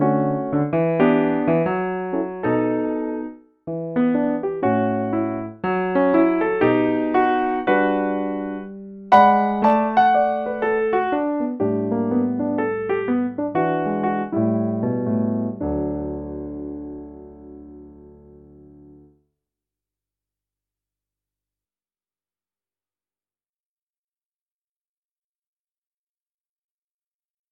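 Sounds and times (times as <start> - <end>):
piano: 0.0 - 19.2.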